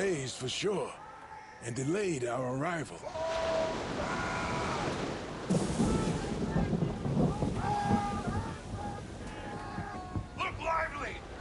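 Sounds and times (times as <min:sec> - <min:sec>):
waves at sea: 0:00.0 - 0:11.3
speech: 0:00.1 - 0:01.0, 0:01.6 - 0:03.8
stormy wind at sea: 0:03.1 - 0:11.3.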